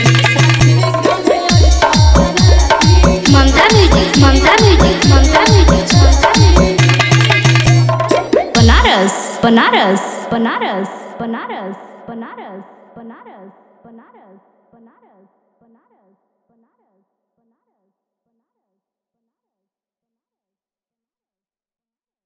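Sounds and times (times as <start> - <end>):
Bhojpuri DJ remix song: 0.0 - 12.6.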